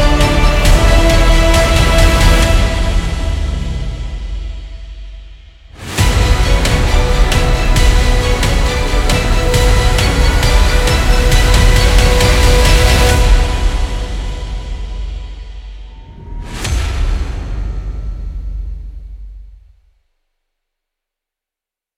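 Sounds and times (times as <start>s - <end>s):
heroic motivational epic music: 0.0s - 19.6s.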